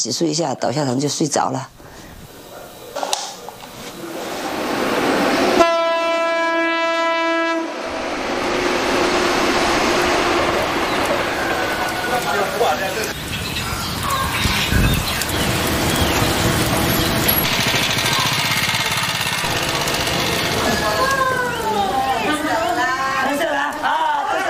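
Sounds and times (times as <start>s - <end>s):
speech: 0.0s - 1.9s
train rolling along a railway line near a small clinic: 3.6s - 24.4s
train horn blast: 5.3s - 12.5s, 19.4s - 21.2s.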